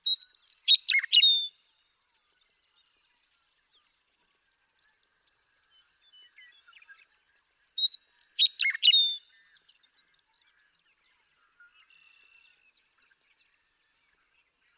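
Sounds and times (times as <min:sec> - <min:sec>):
Western Meadowlark singing: 0:00.0 - 0:01.6, 0:07.8 - 0:09.4.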